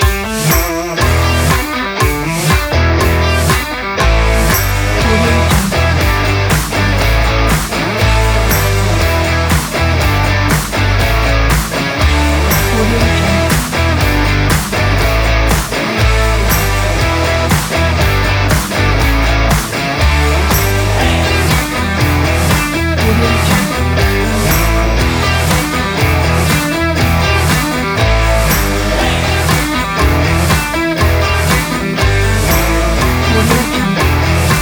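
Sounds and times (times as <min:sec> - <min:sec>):
guitar riffs: 0:00.0 - 0:34.5.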